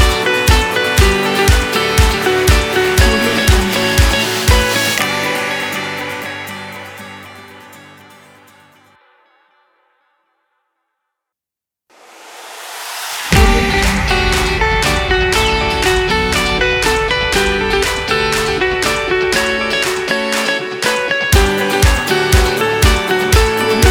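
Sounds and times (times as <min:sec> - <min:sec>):
summer pop music: 0:00.0 - 0:08.0, 0:13.3 - 0:23.9.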